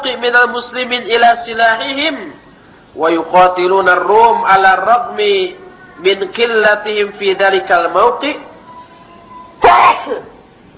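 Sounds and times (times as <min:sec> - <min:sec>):
speech: 0:00.2 - 0:08.5, 0:09.6 - 0:10.3
person sneezing: 0:09.6 - 0:10.3.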